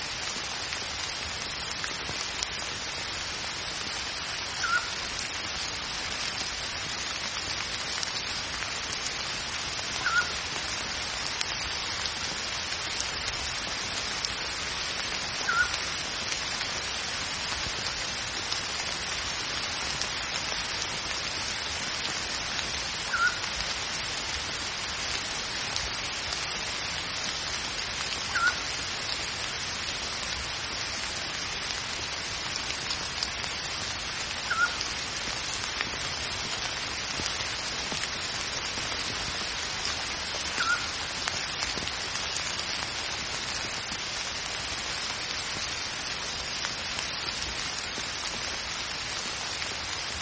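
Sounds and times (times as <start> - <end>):
rain falling: 0.0 - 50.2
pygmy owl whistling: 4.6 - 4.9, 10.0 - 10.3, 15.5 - 15.7, 23.1 - 23.4, 28.4 - 28.6, 34.5 - 34.8.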